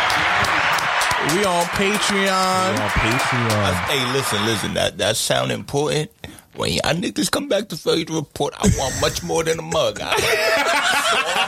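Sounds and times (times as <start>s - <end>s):
people clapping: 0.0s - 4.7s
speech: 1.2s - 11.4s
laughter: 8.6s - 11.4s.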